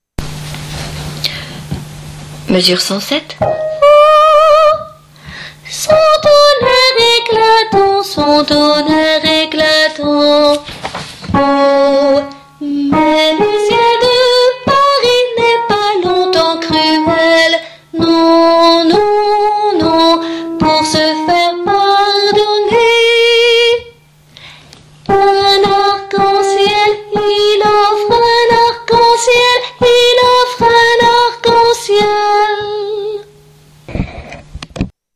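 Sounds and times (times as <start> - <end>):
alto singing: 3.4 - 5.0, 5.7 - 10.6, 11.3 - 23.9, 25.0 - 33.5.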